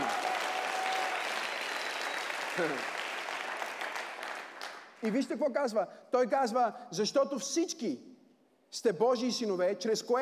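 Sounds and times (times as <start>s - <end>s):
crowd clapping: 0.0s - 5.3s
speech: 2.6s - 3.0s, 5.0s - 8.1s, 8.7s - 10.2s.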